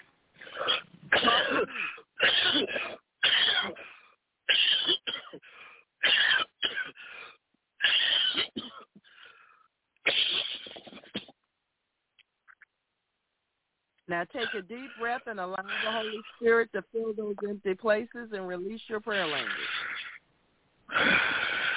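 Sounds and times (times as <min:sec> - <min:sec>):
coughing: 0:00.4 - 0:07.1, 0:07.8 - 0:09.2, 0:10.0 - 0:11.4, 0:14.3 - 0:16.5, 0:19.1 - 0:20.2
speech: 0:14.2 - 0:19.6.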